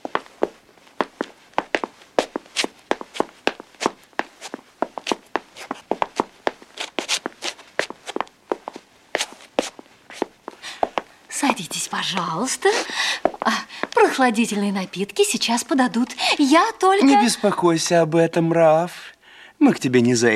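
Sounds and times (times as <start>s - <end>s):
footsteps of people going upstairs: 0.0s - 14.7s
speech: 12.0s - 13.2s, 14.2s - 19.0s, 19.6s - 20.3s.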